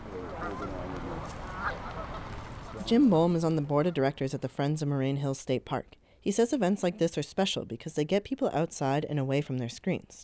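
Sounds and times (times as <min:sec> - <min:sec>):
geese honking: 0:00.0 - 0:04.1
speech: 0:02.9 - 0:10.2.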